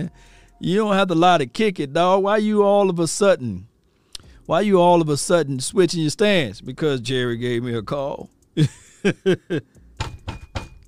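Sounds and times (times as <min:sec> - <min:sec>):
speech: 0:00.0 - 0:03.7, 0:04.5 - 0:09.8
laughter: 0:08.6 - 0:09.6
knocking at a door: 0:10.0 - 0:10.8.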